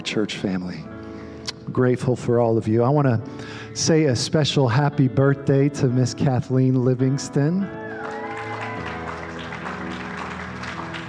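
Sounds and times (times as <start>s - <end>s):
speech: 0.0s - 1.0s, 1.7s - 8.2s
audience applause: 7.8s - 11.0s.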